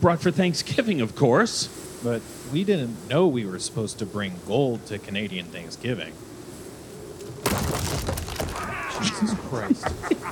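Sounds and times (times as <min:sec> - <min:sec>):
speech: 0:00.0 - 0:06.3, 0:09.0 - 0:10.2
muffled door crash: 0:07.2 - 0:09.3
laughter: 0:08.7 - 0:10.2.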